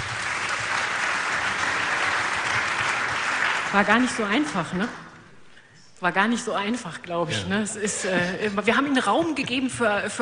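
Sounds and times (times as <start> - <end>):
audience applause: 0.0 - 4.5
speech: 3.7 - 5.0, 6.0 - 10.2.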